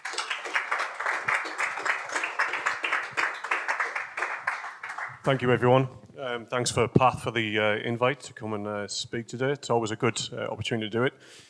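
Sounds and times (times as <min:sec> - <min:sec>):
audience applause: 0:00.0 - 0:05.4
speech: 0:05.2 - 0:11.4.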